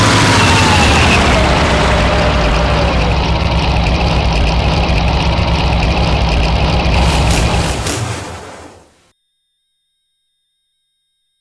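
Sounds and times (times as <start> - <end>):
model tank engine: 0.0 - 7.9.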